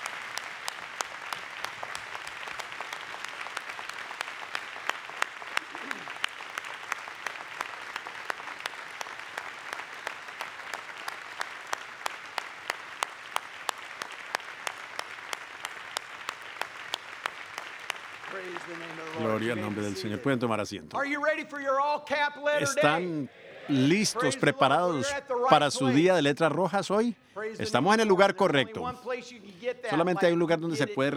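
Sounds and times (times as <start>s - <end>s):
audience applause: 0.0s - 21.1s
speech: 18.4s - 31.1s.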